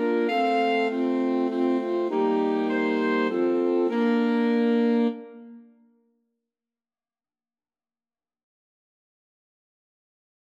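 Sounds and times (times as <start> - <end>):
alto saxophone quartet: 0.0 - 5.7.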